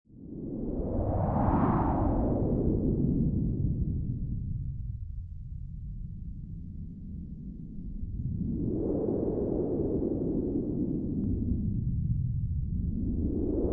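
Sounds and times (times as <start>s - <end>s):
low-frequency space wind ambience: 0.1s - 13.7s.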